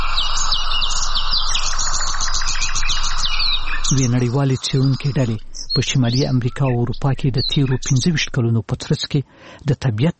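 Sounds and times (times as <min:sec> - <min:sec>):
birds chirping and singing outdoors in nature: 0:00.0 - 0:09.1
speech: 0:03.9 - 0:10.1.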